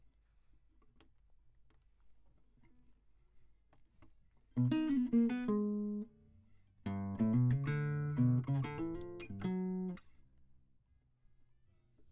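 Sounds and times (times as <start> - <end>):
classical guitar: 4.6 - 6.2, 6.8 - 10.2.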